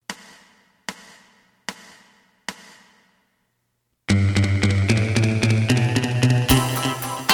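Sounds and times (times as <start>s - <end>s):
bass: 4.1s - 7.2s.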